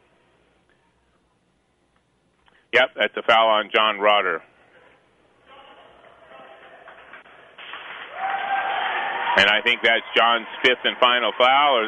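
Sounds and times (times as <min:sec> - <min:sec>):
speech: 0:02.7 - 0:04.5, 0:09.4 - 0:11.8
crowd applause for player leaving court: 0:06.3 - 0:11.8.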